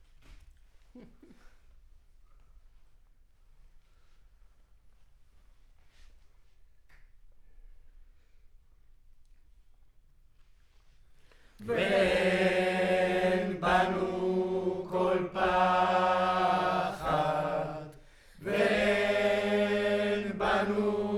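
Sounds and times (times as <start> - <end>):
choir recorded with center U47 microphone: 11.6 - 21.1.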